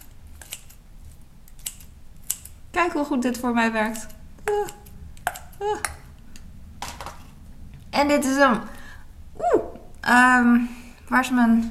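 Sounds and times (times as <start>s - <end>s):
low hum: 0.0s - 11.6s
scissors snipping food in a bowl: 0.4s - 0.8s, 1.5s - 2.6s, 3.3s - 5.6s
speech: 2.8s - 4.8s, 5.6s - 6.0s, 8.0s - 8.8s, 9.4s - 11.6s.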